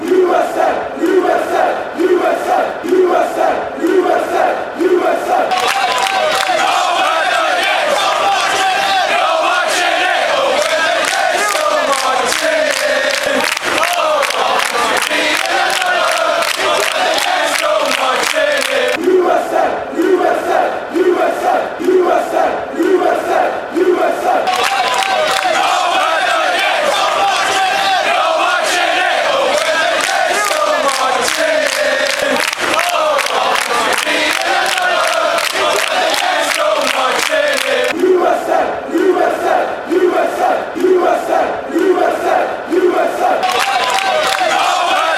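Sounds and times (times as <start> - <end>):
USA fans chanting at the World Cup: 0.0 - 45.1.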